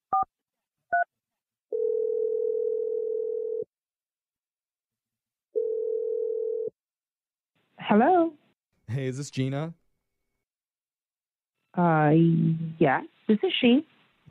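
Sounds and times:
telephone ringback tones: 1.7s - 3.7s, 5.6s - 6.7s
speech: 7.9s - 9.8s, 11.8s - 13.9s.

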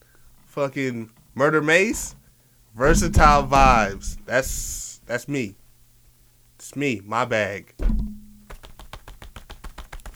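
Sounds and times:
speech: 0.6s - 2.2s, 2.8s - 5.6s, 6.6s - 8.1s
thumping on chest: 2.8s - 4.9s, 7.8s - 10.1s.

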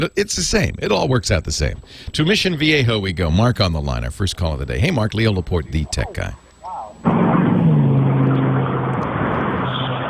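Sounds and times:
speech: 0.0s - 6.4s, 7.0s - 7.3s
Chevrolet Camaro engine roaring as it drives off near a strawberry stand: 7.0s - 10.0s.

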